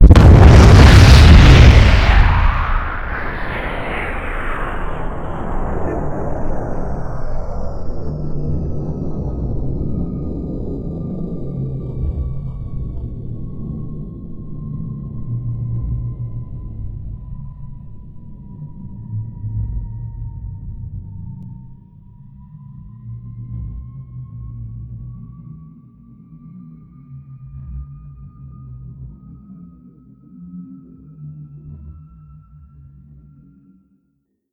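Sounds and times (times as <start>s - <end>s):
fusion bomb explosions: 0.0s - 8.2s.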